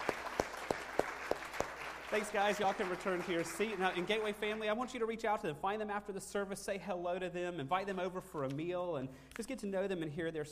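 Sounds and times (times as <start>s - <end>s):
sharp hand claps: 0.0s - 4.7s
speech: 2.1s - 10.5s.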